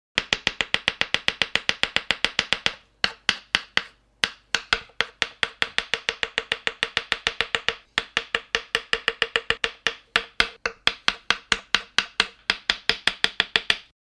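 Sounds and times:
rapid chopping of food on a chopping board: 0:00.2 - 0:13.9.

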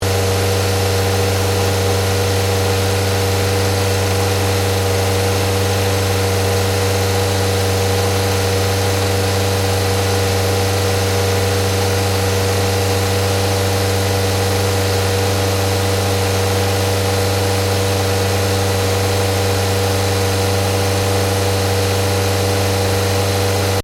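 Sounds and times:
Ford Focus engine idling high in engine bay: 0:00.0 - 0:23.8.

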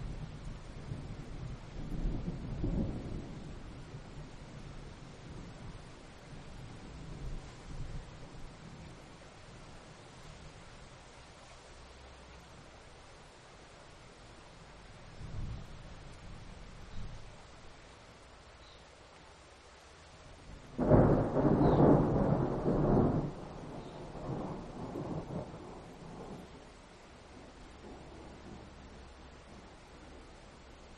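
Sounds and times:
rain: 0:00.0 - 0:30.9
thunder: 0:20.8 - 0:26.6.

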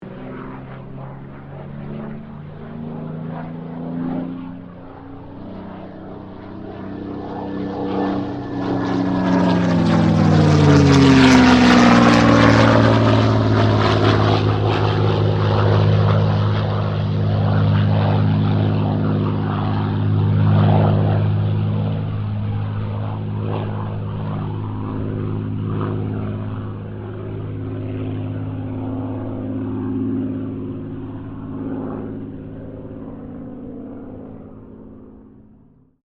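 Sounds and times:
Supermarine Spitfire Mk XVI aircraft passing: 0:00.0 - 0:36.0.

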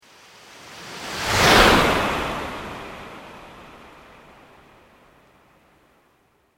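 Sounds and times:
slow organic sweep: 0:00.4 - 0:04.5.

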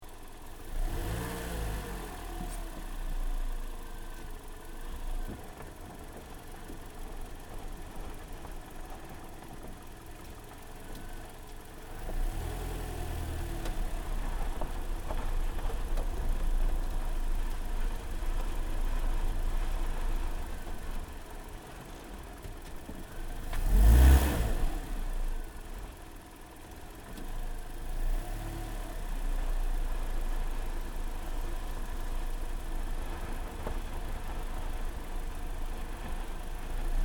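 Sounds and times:
Toyota Corolla hatchback maneuvering on gravel: 0:00.0 - 0:37.0.

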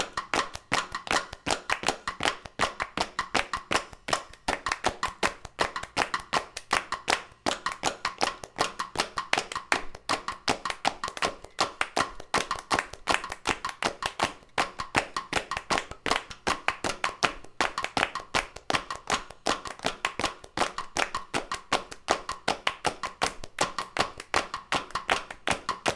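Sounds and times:
up-tempo hand claps beat loop: 0:00.0 - 0:25.9.

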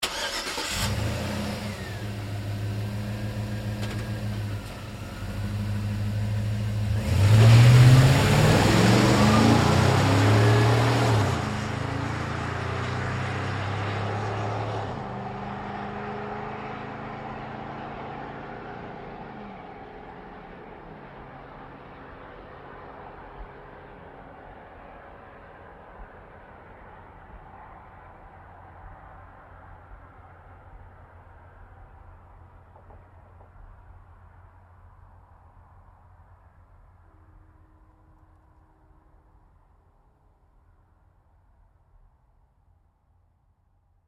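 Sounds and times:
GMC Savana truck starting and pulling away fast: 0:00.0 - 0:25.5.

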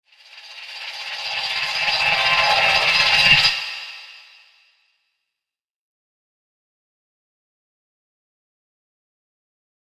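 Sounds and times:
horror transition sound effect: 0:00.1 - 0:04.7.

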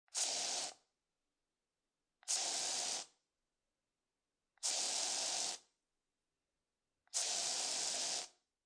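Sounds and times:
aerosol can spraying: 0:00.1 - 0:00.8, 0:02.2 - 0:03.2, 0:04.6 - 0:05.7, 0:07.1 - 0:08.4.

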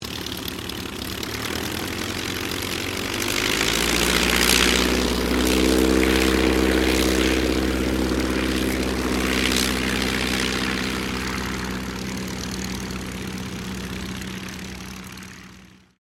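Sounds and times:
de Havilland DH82A Tiger Moth taking off: 0:00.0 - 0:16.0.

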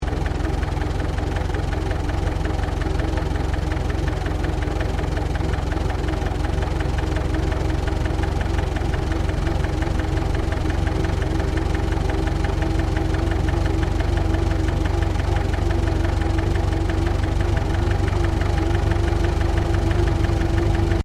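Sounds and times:
1926 Chevrolet 30cwt truck driving slowly: 0:00.0 - 0:21.0.

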